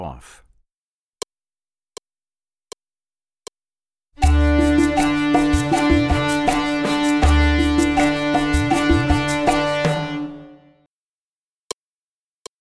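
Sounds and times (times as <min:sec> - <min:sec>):
bow beat: 0:04.2 - 0:10.6.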